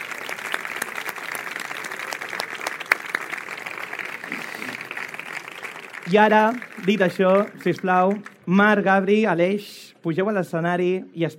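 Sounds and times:
audience applause: 0.0s - 8.4s
speech: 6.1s - 11.3s.

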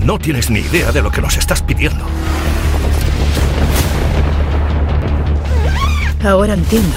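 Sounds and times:
speech: 0.1s - 2.6s, 6.2s - 6.9s
explosions in a film: 2.1s - 5.9s.

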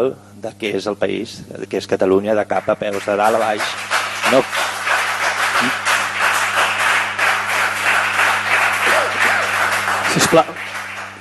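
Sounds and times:
speech: 0.0s - 4.8s, 10.2s - 10.7s
applause in parliamentary plenary session: 2.5s - 11.1s.

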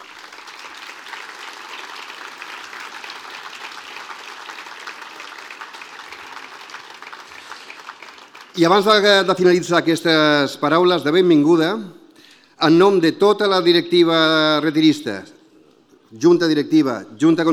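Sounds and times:
audience applause: 0.0s - 9.3s
speech: 8.6s - 12.0s, 12.6s - 15.4s, 16.1s - 17.5s.

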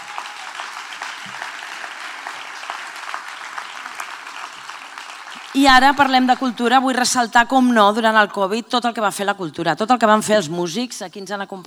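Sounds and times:
audience applause: 0.0s - 6.3s
speech: 5.5s - 11.6s.

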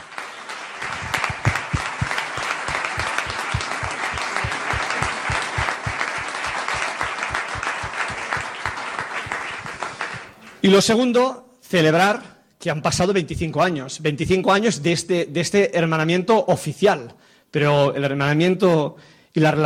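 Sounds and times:
audience applause: 0.0s - 10.6s
speech: 10.6s - 19.6s.

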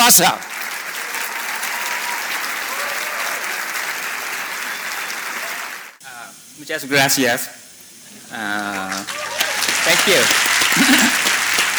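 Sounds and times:
standing ovation applause from audience: 0.0s - 6.4s, 8.1s - 11.7s
speech: 0.1s - 0.5s, 6.6s - 7.6s, 8.3s - 9.2s, 9.8s - 11.1s
laughter: 8.1s - 11.7s.

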